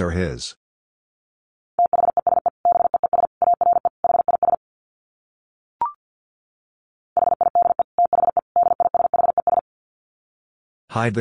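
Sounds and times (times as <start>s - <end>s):
fast Morse code beeps at 50 words per minute: 1.8s - 4.6s, 7.2s - 9.6s.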